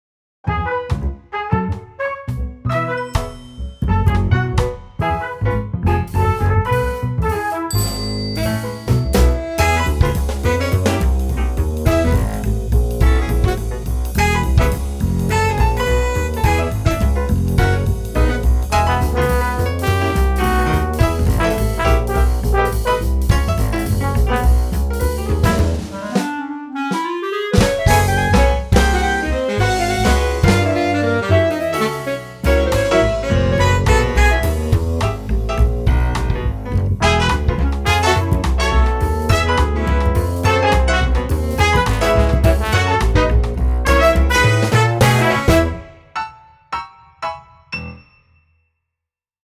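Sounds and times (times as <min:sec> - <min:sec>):
jazz music: 0:00.5 - 0:48.0.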